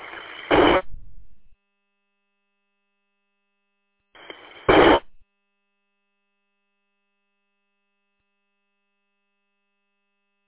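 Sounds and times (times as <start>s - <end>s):
radio static: 0.0s - 1.5s, 4.2s - 5.2s.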